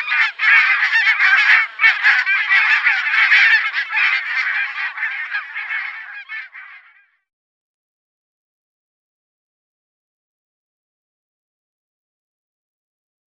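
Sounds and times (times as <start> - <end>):
barnacle goose barking yelps: 0.0 - 7.1.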